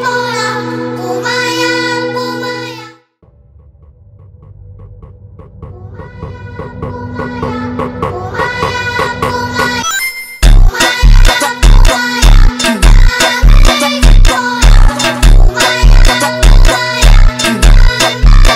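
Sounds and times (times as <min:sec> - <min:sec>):
phonk funk beat: 0:03.9 - 0:09.8, 0:10.4 - 0:18.5.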